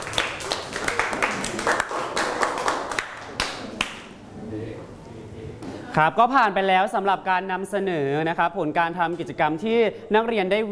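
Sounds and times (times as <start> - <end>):
students clapping for a group: 0.0 - 4.1
speech: 6.0 - 10.7.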